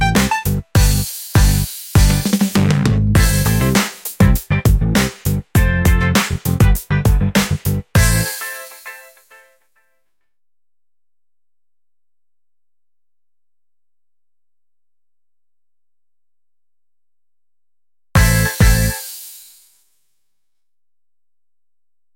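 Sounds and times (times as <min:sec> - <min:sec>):
breakbeat boogie music: 0:00.0 - 0:09.5, 0:18.2 - 0:19.5.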